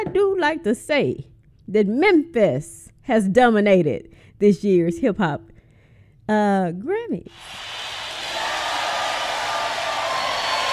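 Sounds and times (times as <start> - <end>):
speech: 0.1 - 5.5, 6.3 - 8.0
applause: 7.3 - 10.7.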